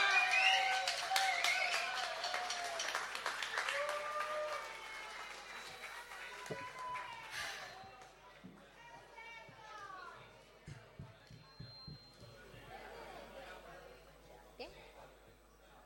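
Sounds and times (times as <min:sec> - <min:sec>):
whistles: 0:00.0 - 0:02.6, 0:03.5 - 0:08.2, 0:11.3 - 0:12.5
crowd applauding and cheering: 0:00.0 - 0:10.2.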